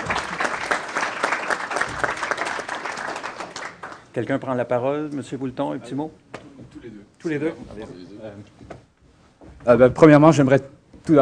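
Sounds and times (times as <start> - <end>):
audience applause: 0.0 - 4.1
speech: 4.2 - 6.2, 7.2 - 8.7, 9.6 - 11.2.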